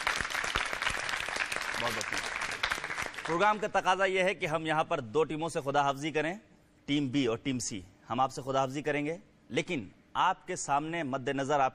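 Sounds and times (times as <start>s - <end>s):
audience applause for winning team: 0.0s - 3.4s
speech: 1.8s - 11.7s.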